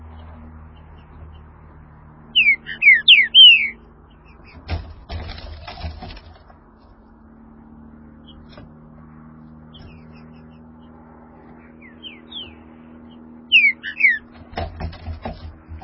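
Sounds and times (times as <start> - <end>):
green-winged saltator whistled song: 2.4 - 3.8, 13.5 - 14.2.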